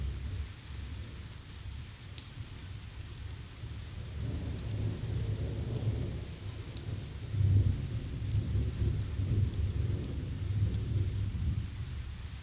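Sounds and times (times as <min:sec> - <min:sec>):
thunderstorm out in the fields: 0:04.0 - 0:12.4.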